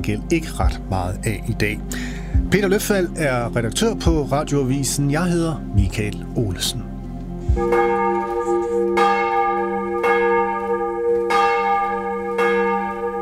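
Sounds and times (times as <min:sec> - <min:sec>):
speech: 0:00.0 - 0:06.9, 0:07.6 - 0:08.2
Vor Frue Kirke church bells ringing for morning service in Copenhagen: 0:07.5 - 0:13.2.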